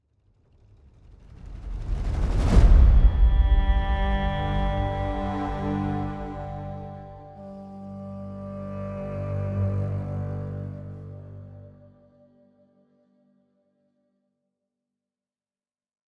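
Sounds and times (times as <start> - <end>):
sad music sting: 2.4 - 13.0.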